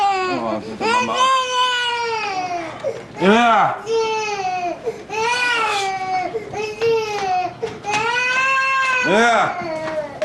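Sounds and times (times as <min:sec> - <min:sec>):
baby crying after waking up: 0:00.0 - 0:10.2
speech: 0:00.6 - 0:01.4, 0:03.2 - 0:04.1, 0:09.1 - 0:09.7.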